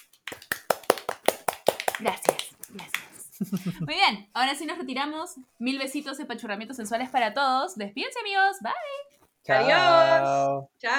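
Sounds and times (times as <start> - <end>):
hands clapping: 0.0 - 3.7
speech: 2.0 - 10.9
laughter: 3.3 - 4.0.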